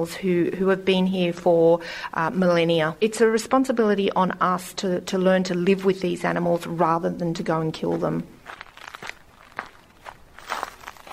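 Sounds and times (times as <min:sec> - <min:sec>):
speech: 0:00.0 - 0:08.6
soft noise: 0:00.0 - 0:11.1
crunchy jogging footsteps at a local sports oval: 0:07.8 - 0:11.1.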